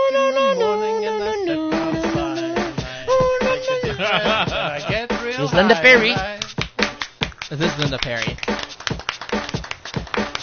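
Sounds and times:
laughter: 1.1 - 6.2, 7.4 - 8.4
hands clapping to a beat: 3.4 - 10.4
speech: 5.6 - 6.4, 7.8 - 8.6.

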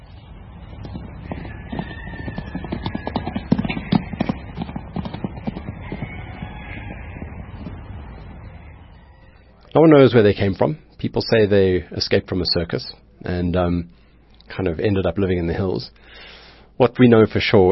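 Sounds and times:
wild horses hooves clip-clopping: 0.6 - 8.5
wild horses whinnying: 1.4 - 7.3
speech: 9.8 - 17.7.

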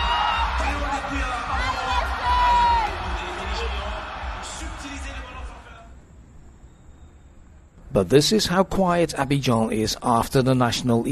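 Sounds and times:
football spectators cheering at the AFCON tournament in Abidjan: 0.0 - 5.9
speech: 8.0 - 11.0.

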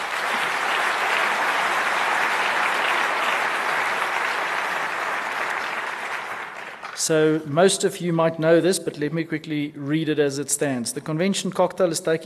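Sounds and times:
audience round of applause: 0.0 - 7.1
speech: 7.1 - 12.2.

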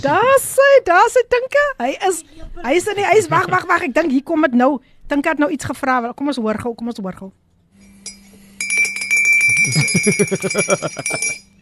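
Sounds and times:
speech: 0.0 - 7.4, 9.6 - 11.5
laughter: 2.9 - 4.1, 9.5 - 11.3
spoon stirring and clinking in a cup: 7.8 - 11.5.

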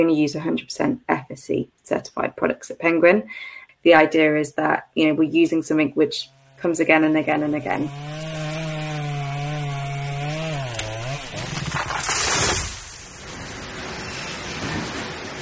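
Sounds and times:
speech: 0.0 - 8.3
chainsaw engine buzzing: 6.2 - 14.6
chainsaw cutting down trees with crashing noise: 7.8 - 15.4.

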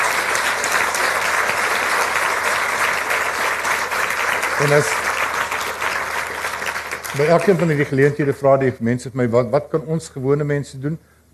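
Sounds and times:
audience applause: 0.0 - 8.4
speech: 4.6 - 5.1, 7.1 - 11.3.

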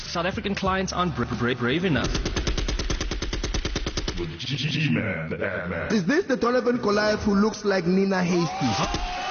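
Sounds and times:
speech: 0.1 - 2.5, 4.2 - 9.2
gunshot sound effect: 1.9 - 4.3.

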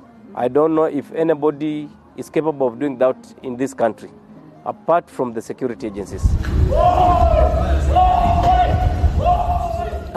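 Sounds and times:
speech: 0.3 - 8.1
man screaming while fighting off abductors: 6.7 - 10.0.

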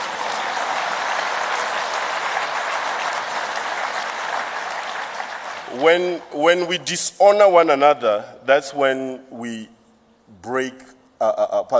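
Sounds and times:
audience clapping: 0.0 - 6.7
speech: 5.7 - 9.8, 10.4 - 11.7.

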